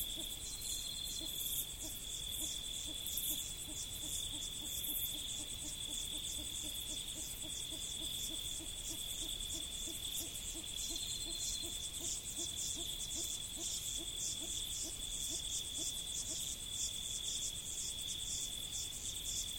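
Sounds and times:
insects trilling high-pitched in prairie: 0.0 - 19.5.

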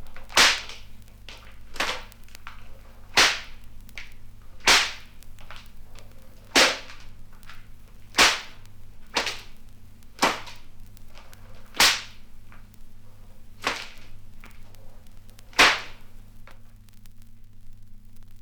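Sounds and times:
horror bone twisting and hits: 0.2 - 5.7, 6.5 - 9.6, 10.2 - 10.7, 11.3 - 12.2, 13.6 - 14.6, 15.5 - 16.0.

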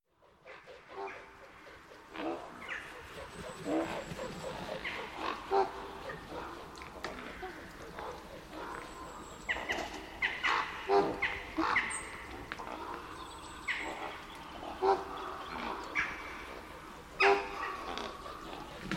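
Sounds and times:
ravens calling: 0.2 - 18.9.

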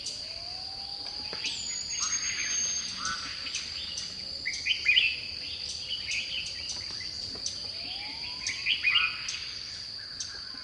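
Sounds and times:
bird song of warbled and slurred whistled phrases in dipterocarp forest: 1.2 - 7.2, 7.9 - 9.9.

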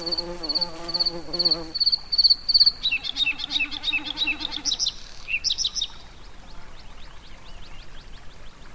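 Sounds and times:
insects in tundra habitat: 0.0 - 5.3.

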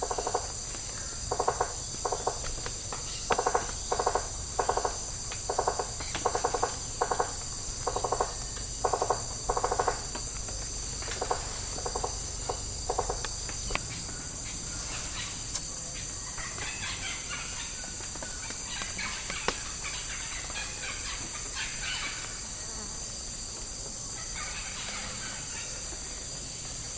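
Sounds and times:
tropical rainforest insects: 0.0 - 26.9.

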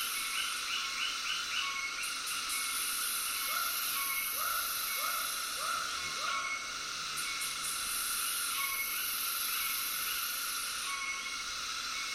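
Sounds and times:
frogs calling in short arched notes: 0.0 - 12.1.

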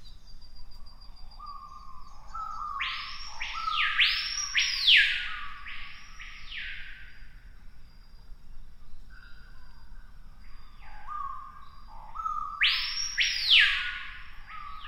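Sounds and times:
screaming piha loud arching whistled notes: 0.0 - 6.9, 10.6 - 14.8.

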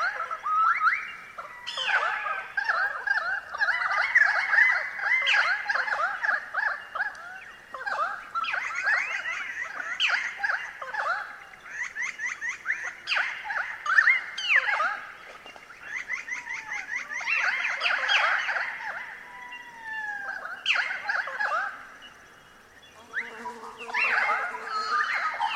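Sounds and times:
Pied currawongs calling in eucalypt forest: 0.0 - 25.5
bees buzzing in eucalypt forest: 22.6 - 25.5.

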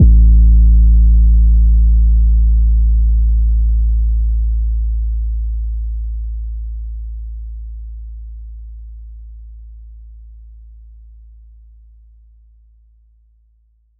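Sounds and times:
phonk 808 kick drum one-shot: 0.0 - 10.0.

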